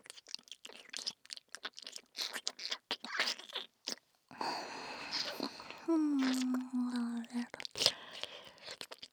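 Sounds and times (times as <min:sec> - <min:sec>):
licking of the left ear: 0:01.6 - 0:08.7.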